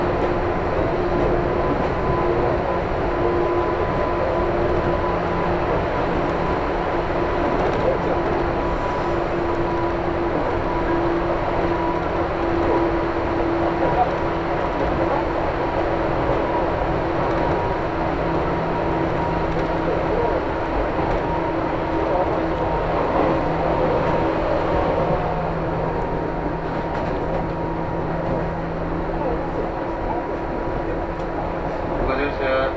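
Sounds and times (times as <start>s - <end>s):
Chuo East Line local train humming while stopped at Shiotsu station: 0.0s - 32.7s.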